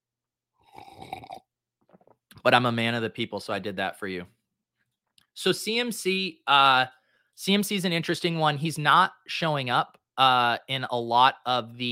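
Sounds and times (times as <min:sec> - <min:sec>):
slurping coffee: 0:00.6 - 0:02.2
speech: 0:02.4 - 0:04.4, 0:05.4 - 0:11.9.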